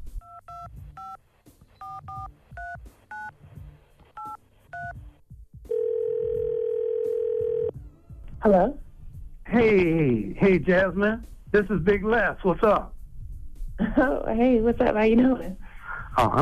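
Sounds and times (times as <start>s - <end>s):
loud steady unbroken telephone tone: 5.7s - 7.7s
speech: 8.4s - 8.8s, 9.5s - 13.0s, 13.9s - 15.6s, 16.2s - 16.4s.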